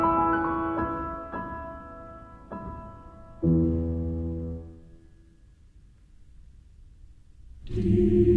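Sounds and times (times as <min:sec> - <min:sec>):
piano piece in E major: 0:00.0 - 0:05.6.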